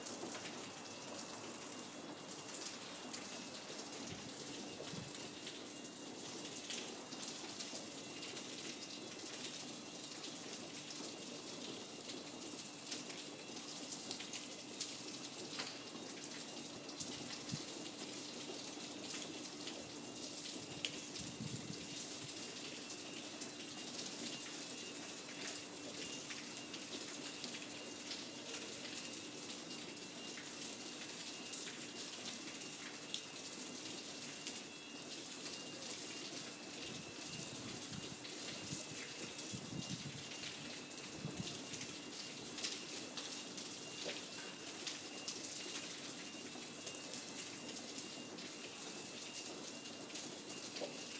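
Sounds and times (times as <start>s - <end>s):
fire alarm at midnight: 0.0s - 51.1s.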